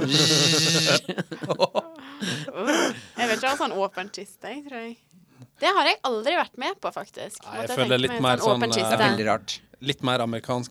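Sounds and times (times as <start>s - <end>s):
voice imitating an electric razor buzzing: 0.0s - 1.0s
laughter: 0.0s - 2.6s
speech: 0.1s - 2.4s, 3.6s - 10.6s.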